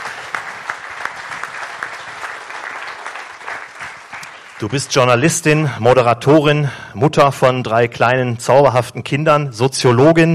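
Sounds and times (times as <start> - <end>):
sharp individual claps: 0.0 - 4.8
audience applauding: 0.0 - 5.2
speech: 4.6 - 10.3.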